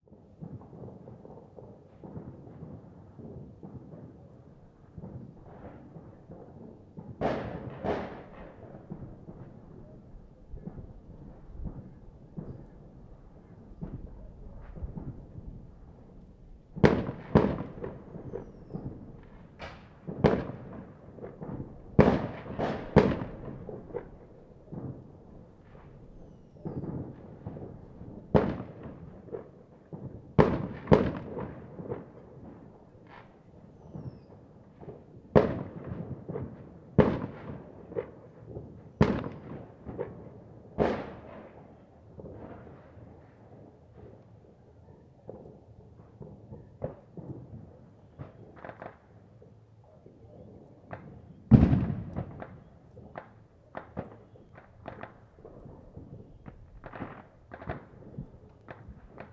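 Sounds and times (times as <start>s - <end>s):
fireworks: 0.0s - 59.3s.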